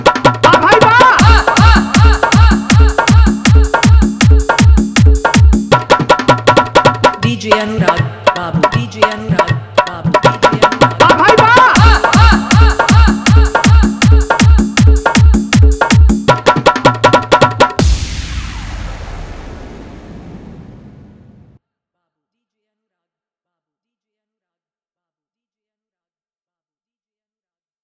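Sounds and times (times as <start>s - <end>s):
Desi dholak beat dance mix: 0.0s - 18.1s.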